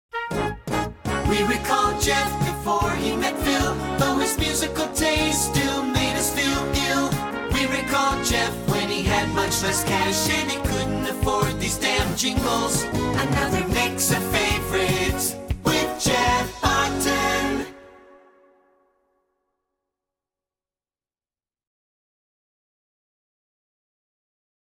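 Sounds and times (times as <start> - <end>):
song: 0.1 - 18.9.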